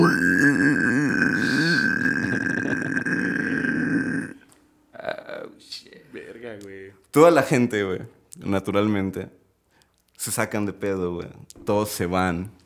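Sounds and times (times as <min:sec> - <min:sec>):
man imitating a pig with a rasping grunt-squeal: 0:00.0 - 0:04.4
man laughing: 0:01.4 - 0:03.6
speech: 0:07.1 - 0:09.4, 0:10.2 - 0:12.6.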